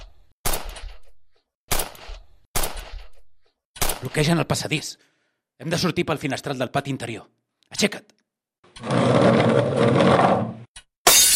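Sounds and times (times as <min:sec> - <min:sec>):
gunshots: 0:01.7 - 0:03.1
speech: 0:04.0 - 0:08.2, 0:08.8 - 0:10.4.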